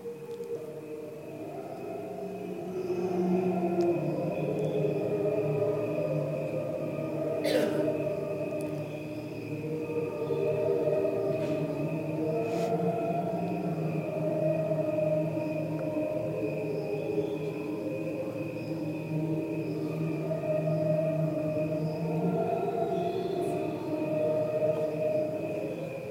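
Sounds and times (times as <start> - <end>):
slowed-down recording of cricket chirping: 0.0 - 26.0.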